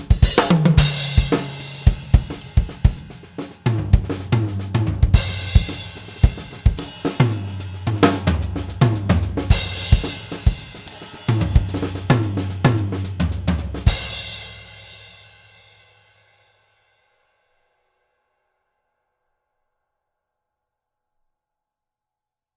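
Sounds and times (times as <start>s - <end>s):
smooth jazz music: 0.5s - 13.9s.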